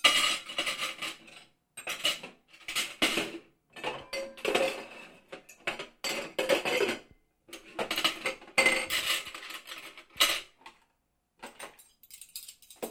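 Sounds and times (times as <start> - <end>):
dishes being stacked: 1.8 - 10.5, 11.4 - 12.8.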